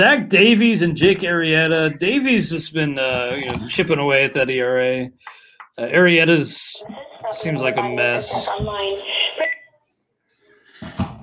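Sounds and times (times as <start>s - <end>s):
speech: 0.0s - 9.2s
murmur of voice: 6.7s - 9.6s
phone beep from a spam call: 6.9s - 9.7s.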